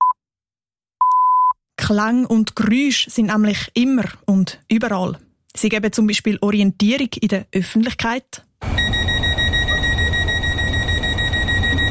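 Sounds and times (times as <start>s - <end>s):
speech: 1.9s - 8.8s
siren: 8.6s - 11.9s.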